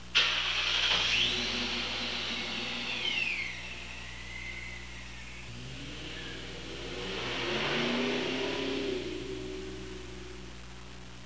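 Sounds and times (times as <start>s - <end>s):
vehicle driving off: 0.2s - 10.8s.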